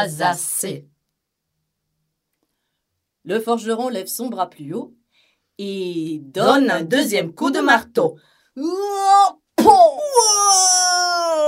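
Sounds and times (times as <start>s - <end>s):
speech: 0.0s - 0.9s, 3.2s - 5.0s, 5.6s - 11.4s
loud scream of pain: 8.7s - 11.4s.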